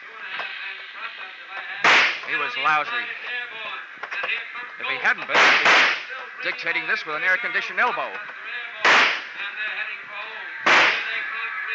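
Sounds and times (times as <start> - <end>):
gunshots in a rooftop shootout from a detective drama: 1.8 - 2.4, 5.3 - 6.2, 8.8 - 9.4, 10.6 - 11.4
speech: 2.3 - 3.4, 4.8 - 8.4.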